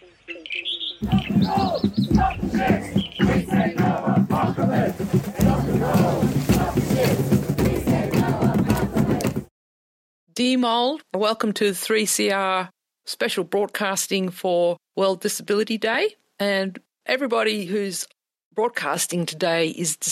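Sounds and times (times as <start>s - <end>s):
speech: 1.0s - 2.8s, 10.4s - 20.0s
protest crowd chanting and singing at the Newcastle coal port blockade: 1.0s - 9.5s.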